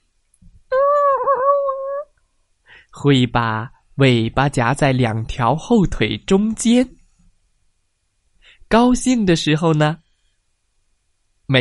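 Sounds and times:
dog whimpering: 0.7 - 2.1
speech: 3.0 - 7.0, 8.7 - 10.0.

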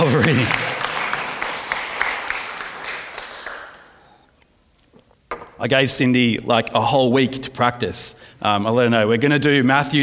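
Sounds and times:
round of applause: 0.0 - 4.0
speech: 5.6 - 10.0.

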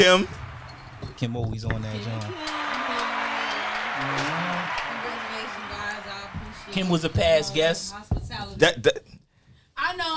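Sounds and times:
speech: 0.0 - 0.4, 1.2 - 2.6, 4.0 - 5.9, 6.7 - 9.0, 9.8 - 10.1
canned applause sound effect: 2.2 - 7.1.

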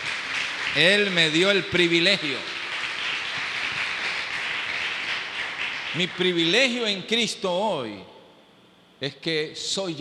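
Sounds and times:
audience applause: 0.0 - 6.5
speech: 0.7 - 2.5, 6.0 - 8.1, 9.0 - 10.0.

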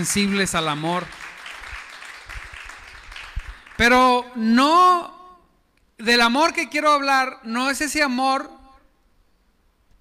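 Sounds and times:
speech: 0.0 - 1.2, 3.8 - 5.2, 6.0 - 8.6
audience applauding: 0.0 - 4.0.

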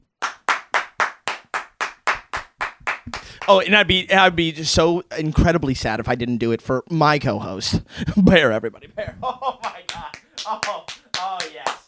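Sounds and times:
audience clapping: 0.0 - 4.0, 9.5 - 11.8
speech: 3.1 - 11.8
laughter: 8.0 - 11.6.

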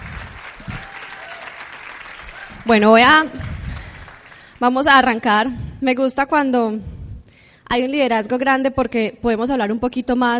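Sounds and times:
audience applause: 0.0 - 4.6
speech: 2.6 - 3.4, 4.6 - 6.9, 7.7 - 10.3.

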